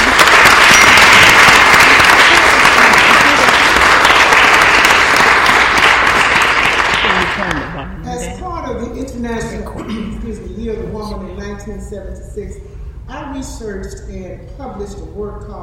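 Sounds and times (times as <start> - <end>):
crowd applause: 0.0 - 7.8
speech: 11.6 - 15.6.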